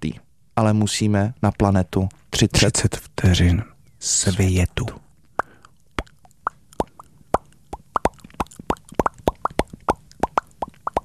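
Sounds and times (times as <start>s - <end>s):
speech: 0.0s - 5.0s
bubbles popping: 5.4s - 11.0s.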